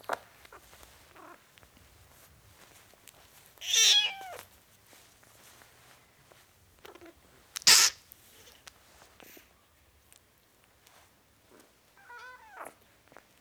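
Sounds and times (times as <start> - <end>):
four-week-old kitten meowing: 3.6 - 4.4, 7.7 - 8.0.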